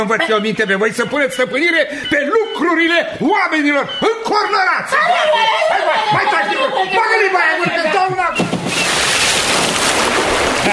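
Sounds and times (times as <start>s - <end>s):
laughter: 0.0s - 0.7s, 5.0s - 8.3s, 10.6s - 10.7s
speech: 0.0s - 8.9s
splash of the devil jumping into a pond: 8.4s - 10.7s.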